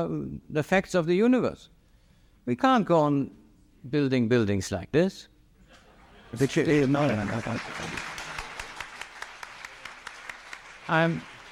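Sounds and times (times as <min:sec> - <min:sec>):
speech: 0:00.0 - 0:01.8, 0:02.4 - 0:05.3, 0:06.3 - 0:08.1, 0:10.9 - 0:11.3
laughter: 0:05.6 - 0:08.8
audience applause: 0:06.4 - 0:11.5.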